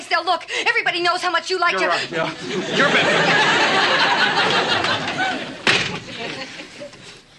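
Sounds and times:
speech: 0:00.2 - 0:05.0
laughter: 0:02.1 - 0:07.2
door slamming shut: 0:05.6 - 0:06.1.

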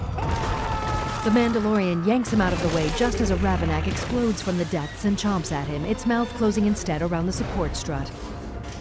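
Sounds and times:
ice cracking across a frozen surface: 0:00.2 - 0:05.3
speech: 0:01.2 - 0:08.3.

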